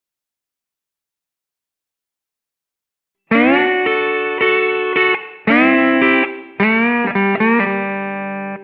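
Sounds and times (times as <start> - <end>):
slide guitar in G: 3.3 - 8.6.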